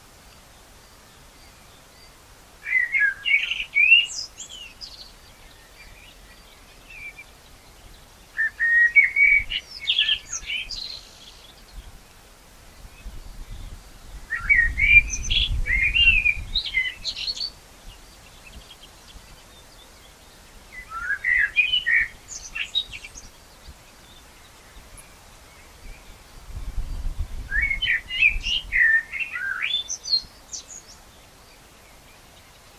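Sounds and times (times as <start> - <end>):
Common blackbird song: 1.1 - 11.9, 12.8 - 26.2, 26.8 - 32.7.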